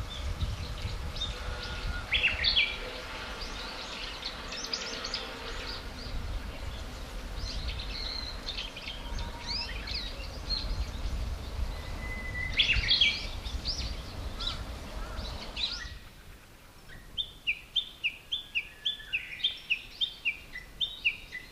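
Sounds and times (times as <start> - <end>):
bush warbler singing: 0.0 - 21.5.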